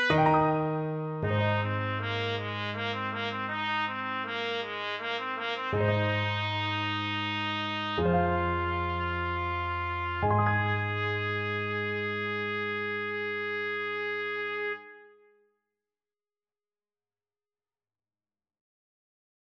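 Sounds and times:
trumpet playing classical piece: 0.0 - 15.3.

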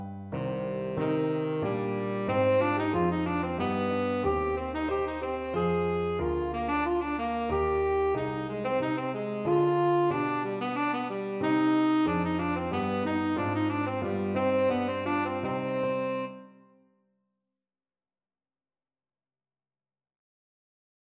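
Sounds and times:
tenor saxophone: 0.4 - 16.7.

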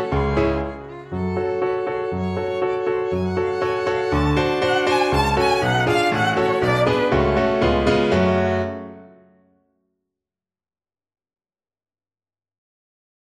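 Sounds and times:
piano trio: 0.0 - 9.3.

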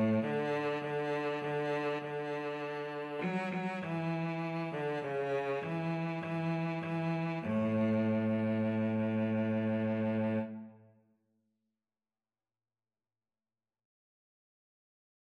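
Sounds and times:
violin and cello duet: 0.0 - 10.8.

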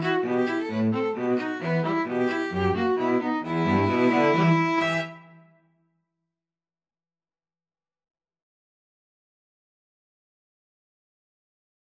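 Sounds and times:
string trio playing: 0.0 - 5.4.

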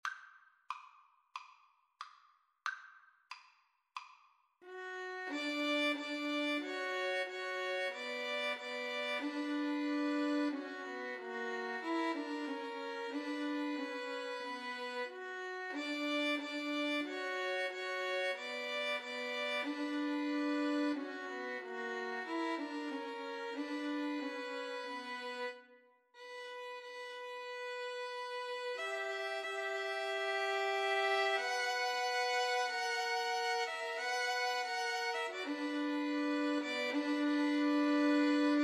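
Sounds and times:
violin trio: 4.6 - 38.6.

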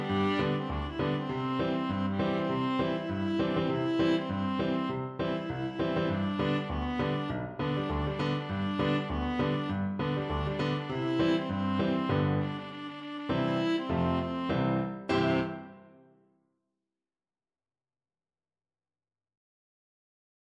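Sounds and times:
viola playing a galop: 0.0 - 15.9.

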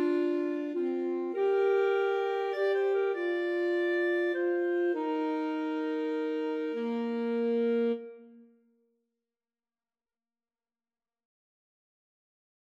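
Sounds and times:
saxophone playing a hymn in a duet: 0.0 - 8.5
clarinet playing a hymn in a duet: 0.0 - 8.6.

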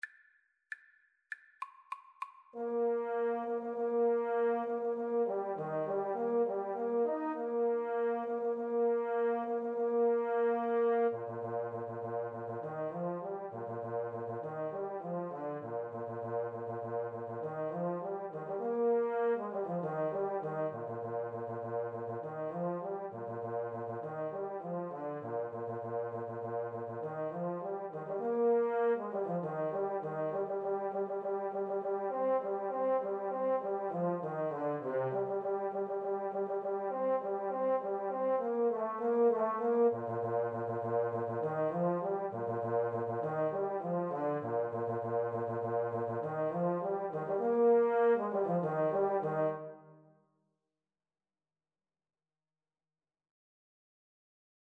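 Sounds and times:
tuba duet: 2.6 - 50.0.

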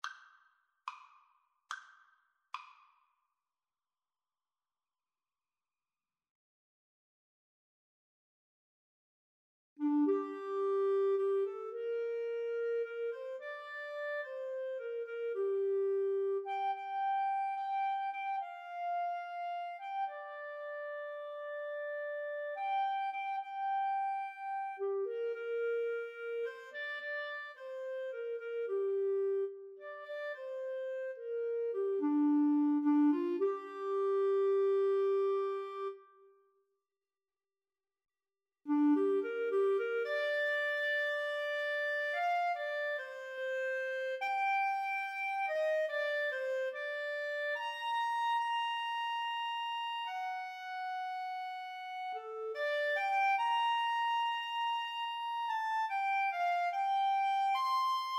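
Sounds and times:
clarinet duet: 9.8 - 36.3, 38.7 - 58.1.

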